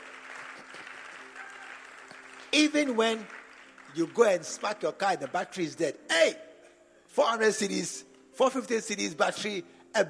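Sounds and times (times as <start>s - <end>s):
audience clapping: 0.0s - 5.6s
speech: 2.5s - 6.4s, 7.1s - 10.0s.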